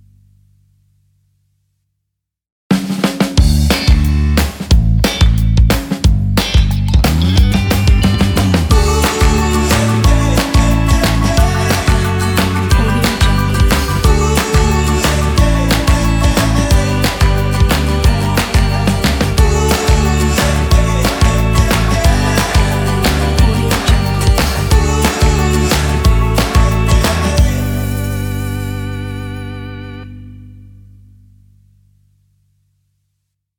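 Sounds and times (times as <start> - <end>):
energetic upbeat indie rock opener: 3.4 - 29.2.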